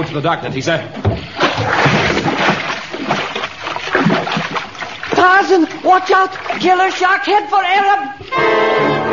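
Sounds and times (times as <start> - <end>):
water churning and sloshing: 0.0 - 8.4
speech: 0.1 - 3.2, 5.2 - 9.0
person plunging into water: 1.1 - 7.0.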